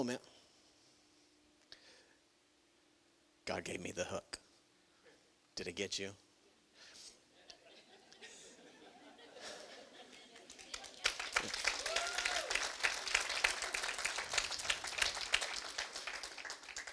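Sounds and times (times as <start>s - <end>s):
speech: 0.0s - 0.4s, 3.5s - 4.4s, 5.6s - 6.2s
laughter: 7.4s - 11.6s
audience applause: 10.1s - 16.9s.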